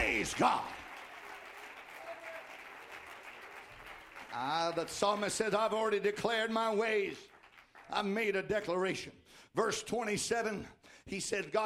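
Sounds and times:
audience clapping: 0.0s - 8.6s
speech: 0.2s - 0.8s, 4.3s - 7.3s, 7.9s - 11.6s.

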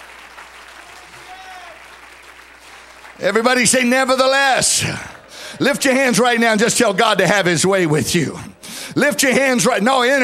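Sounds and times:
audience clapping hands: 0.0s - 7.2s
speech: 3.2s - 10.2s.

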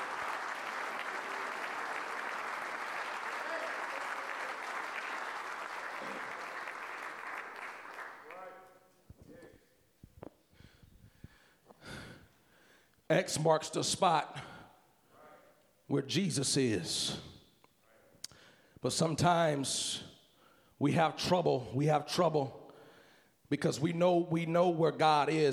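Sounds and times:
audience clapping: 0.0s - 8.8s
speech: 13.1s - 14.5s, 15.9s - 17.3s, 18.8s - 20.1s, 20.8s - 22.6s, 23.5s - 25.5s.

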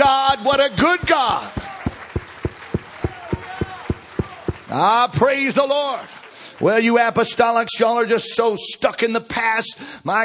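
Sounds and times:
church congregation clapping in unison: 0.0s - 7.6s
speech: 0.3s - 1.6s, 4.7s - 10.2s.

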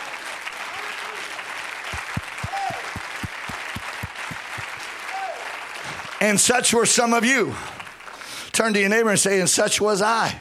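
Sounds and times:
audience clapping hands: 0.0s - 8.6s
regular low thumping beat: 2.0s - 4.8s
speech: 6.2s - 7.8s, 8.6s - 10.3s.

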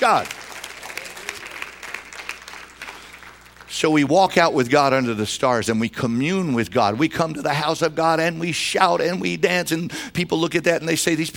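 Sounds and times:
speech: 0.0s - 0.4s, 3.7s - 11.3s
congregation clapping hands during a church service: 0.0s - 4.1s.

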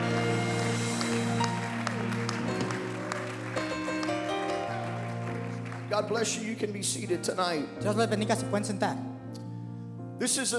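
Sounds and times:
people clapping their hands: 0.0s - 7.0s
speech: 5.9s - 9.1s, 10.2s - 10.5s.

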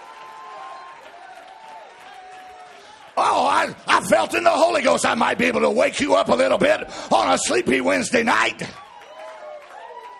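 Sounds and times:
audience clapping: 0.0s - 4.2s, 8.5s - 10.1s
speech: 3.2s - 8.8s.

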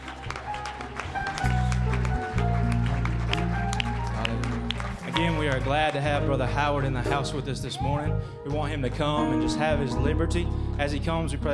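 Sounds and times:
audience clapping hands in praise: 0.0s - 7.3s
speech: 5.2s - 11.5s.

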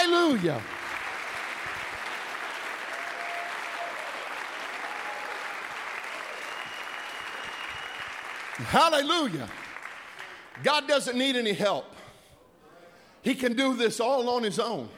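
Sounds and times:
audience clapping for the Lord: 0.0s - 10.8s
speech: 0.3s - 0.8s, 8.6s - 9.6s, 10.6s - 12.0s, 13.2s - 14.9s.

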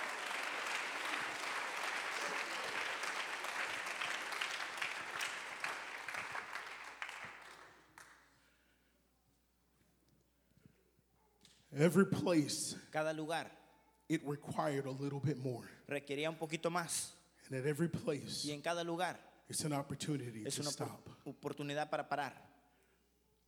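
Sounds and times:
audience clapping hands: 0.0s - 8.3s
speech: 11.8s - 22.5s.

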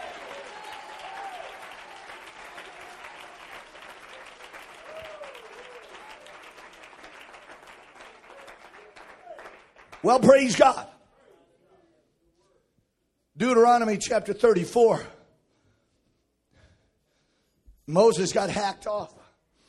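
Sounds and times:
audience applause: 0.0s - 10.5s
speech: 10.0s - 10.9s, 13.4s - 15.2s, 17.9s - 19.2s.

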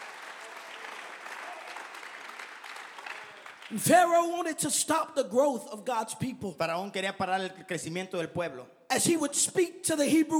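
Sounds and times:
audience clapping hands: 0.0s - 4.1s
speech: 3.7s - 10.3s.

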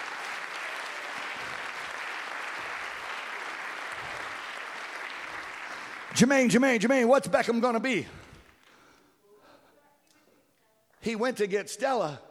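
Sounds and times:
audience clapping hands: 0.0s - 8.7s
speech: 6.2s - 8.2s, 11.0s - 12.2s.

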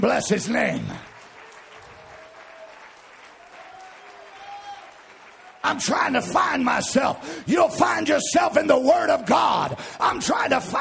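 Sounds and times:
speech: 0.0s - 1.1s, 5.7s - 10.7s
audience clapping: 0.0s - 7.2s.

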